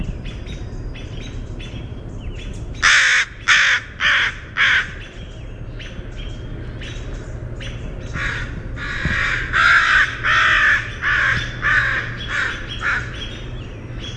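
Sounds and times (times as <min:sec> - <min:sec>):
northern crested caracara uttering a short rasping harsh call: 0:02.8 - 0:05.0, 0:08.1 - 0:13.4.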